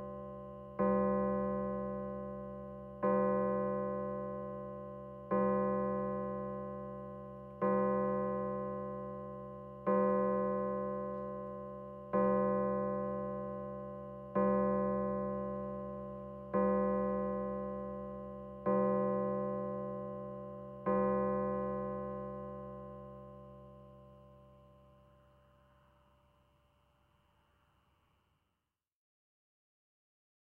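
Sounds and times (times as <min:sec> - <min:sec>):
grandfather clock in the countryside: 0:00.8 - 0:22.7.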